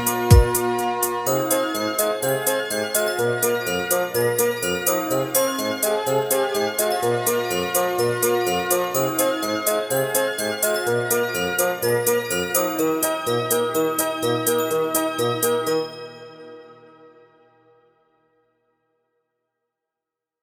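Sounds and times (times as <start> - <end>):
orchestral polka: 0.0 - 15.8.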